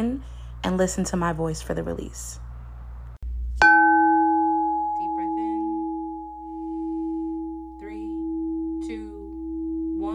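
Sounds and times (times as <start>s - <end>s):
speech: 0.0s - 2.4s
bell ringing: 3.6s - 10.1s.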